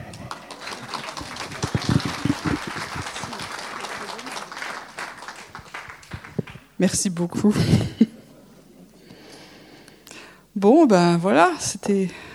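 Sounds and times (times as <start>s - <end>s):
audience applauding: 0.0s - 7.5s
laughter: 0.3s - 6.2s, 7.4s - 9.1s
speech: 6.8s - 8.1s, 10.8s - 12.3s.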